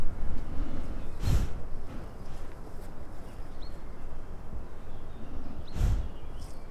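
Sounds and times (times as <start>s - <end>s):
donkey snorting breath: 0.2s - 2.5s, 4.9s - 6.4s.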